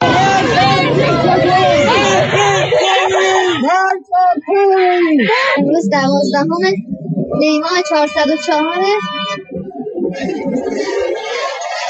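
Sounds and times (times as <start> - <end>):
protest crowd chanting slogans in Sadeghieh Square Tehran: 0.0 - 3.6
laughter: 0.0 - 4.0, 10.1 - 11.8
speech: 4.0 - 9.2, 10.2 - 11.2.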